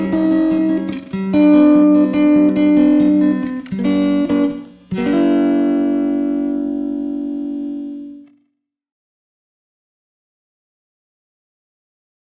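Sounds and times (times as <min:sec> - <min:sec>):
12 bar blues on Kite Guitar: 0:00.0 - 0:08.4.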